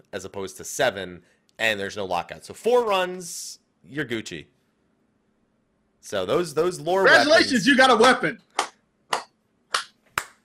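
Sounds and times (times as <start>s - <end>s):
speech: 0.1s - 4.6s, 6.0s - 8.5s
golf clap: 8.0s - 10.4s.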